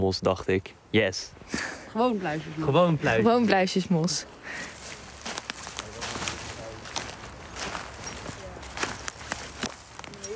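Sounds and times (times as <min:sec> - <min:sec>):
speech: 0:00.0 - 0:04.8
constant rustling hiss: 0:00.0 - 0:10.3
footsteps crunching on leafy forest floor in Drenthe Netherlands at the Drentse Aa: 0:04.5 - 0:10.3.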